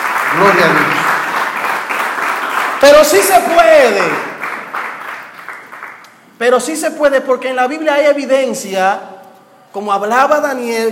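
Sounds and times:
audience applause: 0.0 - 6.0
speech: 0.3 - 1.0, 2.8 - 4.3, 6.4 - 9.1, 9.7 - 10.8.

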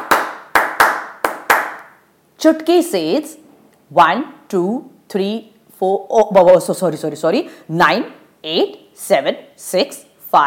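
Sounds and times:
crisp hand claps in a small room: 0.0 - 2.0
speech: 2.4 - 10.4.

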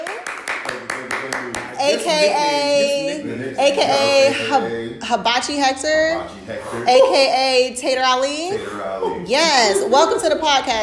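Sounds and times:
hands clapping in a steady rhythm: 0.0 - 2.2
speech: 1.9 - 10.8.

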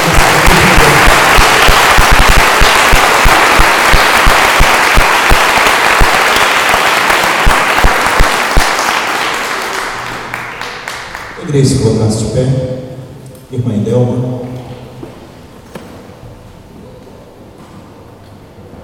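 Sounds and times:
audience clapping hands: 0.0 - 11.8
speech: 11.6 - 12.7, 13.6 - 14.4.

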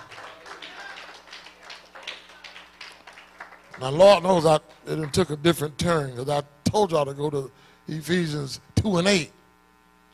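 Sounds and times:
group clapping hands: 0.0 - 5.4
speech: 3.8 - 9.4.

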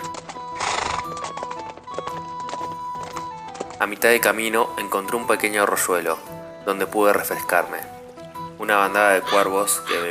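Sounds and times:
horse hooves galloping: 0.0 - 8.3
horse snorting: 0.6 - 1.6
speech: 3.8 - 8.0, 8.6 - 10.1.

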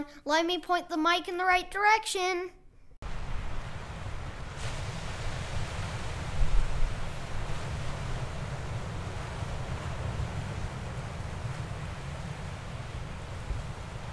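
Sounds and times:
speech: 0.0 - 2.6
Atlantic Ocean waves on the shore off New Hampshire: 3.0 - 14.1.

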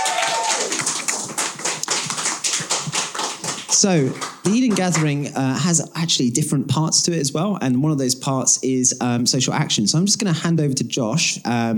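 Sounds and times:
audience round of applause: 0.0 - 5.2
speech: 3.8 - 11.7.

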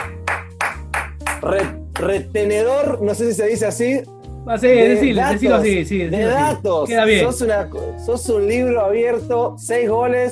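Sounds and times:
applause sound effect: 0.0 - 2.2
speech: 1.4 - 10.3.

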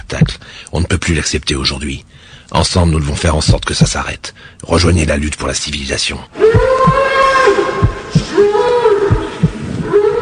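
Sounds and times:
speech: 0.1 - 7.6
bull crying out while being killed: 6.4 - 10.2.

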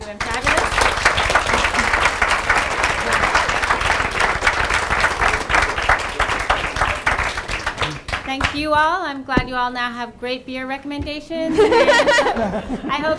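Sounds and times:
audience applause: 0.0 - 8.5
speech: 8.6 - 13.1
laughter: 11.4 - 13.1.

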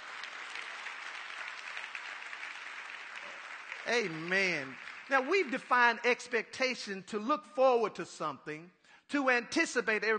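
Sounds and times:
crowd audience hand clapping: 0.0 - 6.4
speech: 3.9 - 10.1.

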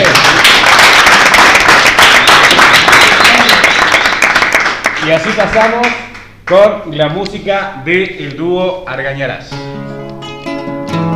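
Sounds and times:
audience applause: 0.0 - 6.0
speech: 5.1 - 9.6.

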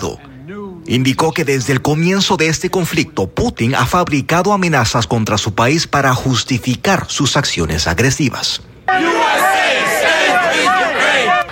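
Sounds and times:
speech: 0.0 - 9.4
crowd shouting and cheering in support at rally: 8.9 - 11.5.

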